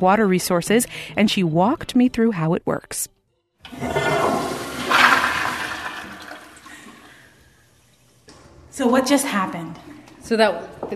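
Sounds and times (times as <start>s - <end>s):
speech: 0.0s - 4.2s, 8.8s - 10.9s
toilet flushing: 3.7s - 8.1s.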